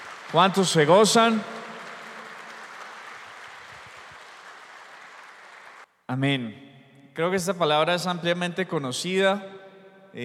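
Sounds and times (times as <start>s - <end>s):
audience applause: 0.0s - 5.9s
speech: 0.3s - 1.6s, 6.1s - 6.6s, 7.2s - 10.2s.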